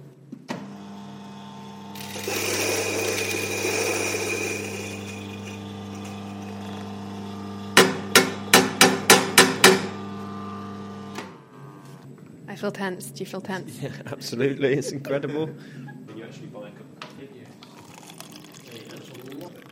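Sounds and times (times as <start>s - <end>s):
coffee grinder grinding coffee beans for paper filter: 1.4s - 11.1s, 17.6s - 19.6s
speech: 12.6s - 16.0s.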